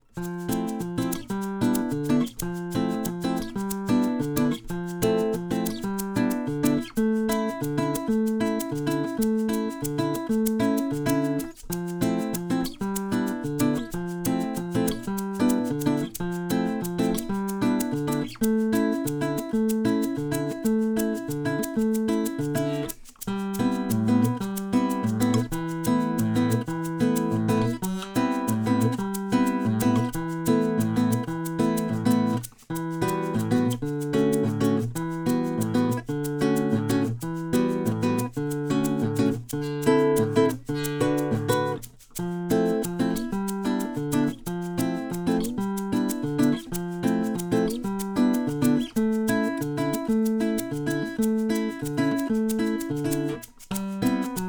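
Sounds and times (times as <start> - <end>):
bossa nova music: 0.3 - 54.4.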